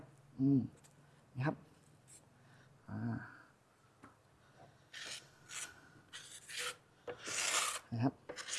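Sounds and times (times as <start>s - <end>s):
speech: 0.4s - 0.8s, 1.4s - 1.7s, 2.9s - 3.4s, 7.9s - 8.2s
steel ruler scraping setting cement smooth in a mold: 4.9s - 8.5s.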